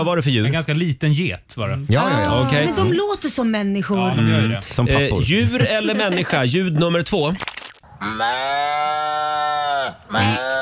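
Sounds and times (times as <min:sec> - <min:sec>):
speech: 0:00.0 - 0:09.2
person imitating a cow's moo: 0:08.0 - 0:10.6.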